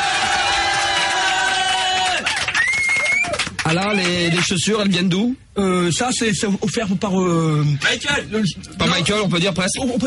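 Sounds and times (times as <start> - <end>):
cheering crowd in a standing ovation: 0.0 - 4.4
speech: 3.7 - 10.0.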